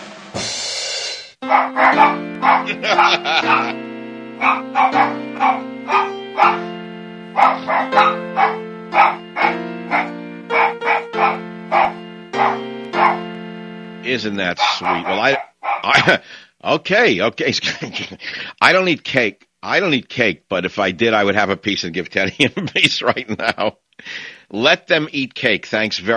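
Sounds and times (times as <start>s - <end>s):
dogs barking: 1.4s - 13.4s, 14.6s - 16.1s
sustained musical tones: 1.4s - 15.3s
speech: 1.5s - 3.5s, 14.1s - 26.1s
laughter: 1.9s - 3.8s, 14.6s - 16.3s, 17.6s - 18.3s, 22.3s - 23.7s.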